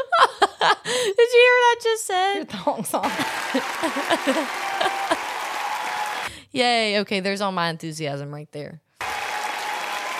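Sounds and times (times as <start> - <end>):
laughter: 0.0 - 0.9, 3.0 - 6.2
speech: 0.6 - 5.2, 6.5 - 8.8
applause sound effect: 3.0 - 6.3, 9.0 - 10.1.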